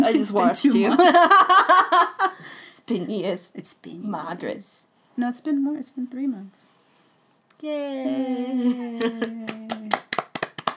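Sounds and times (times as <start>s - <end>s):
speech: 0.0s - 6.7s, 7.6s - 10.0s
hands clapping: 9.0s - 10.7s.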